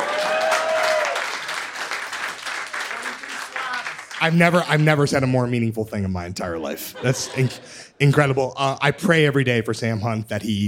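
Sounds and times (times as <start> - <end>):
audience clapping: 0.0 - 5.4
speech: 4.2 - 10.6
laughter: 6.7 - 8.2.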